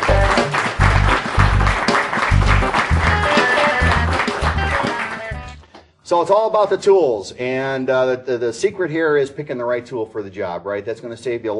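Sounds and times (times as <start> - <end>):
audience applause: 0.0 - 5.6
speech: 6.1 - 11.5.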